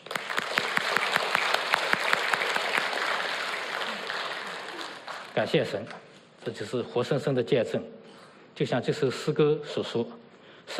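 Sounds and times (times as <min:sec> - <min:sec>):
crowd applause: 0:00.0 - 0:05.4
speech: 0:05.4 - 0:08.0, 0:08.6 - 0:10.7.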